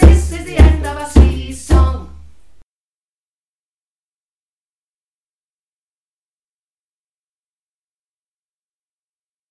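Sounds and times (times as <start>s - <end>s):
song: 0.0s - 2.4s.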